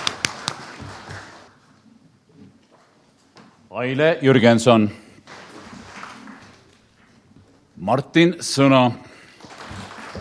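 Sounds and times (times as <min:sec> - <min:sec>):
audience applause: 0:00.0 - 0:01.5, 0:09.4 - 0:10.1
speech: 0:03.8 - 0:05.0, 0:07.9 - 0:09.1.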